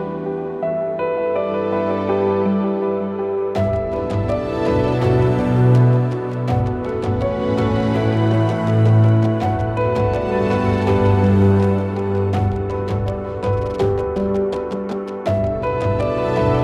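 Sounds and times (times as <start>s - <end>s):
chill ambient documentary music: 0.0s - 16.6s.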